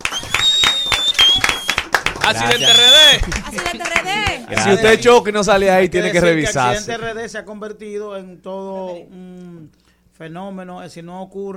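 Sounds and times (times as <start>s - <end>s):
audience applause: 0.0s - 4.8s
speech: 2.3s - 11.5s.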